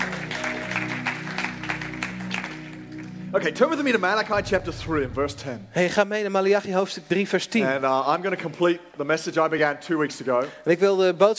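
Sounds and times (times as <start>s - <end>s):
audience applause: 0.0s - 3.3s
speech: 3.3s - 11.3s
low sustained hum: 4.4s - 5.8s.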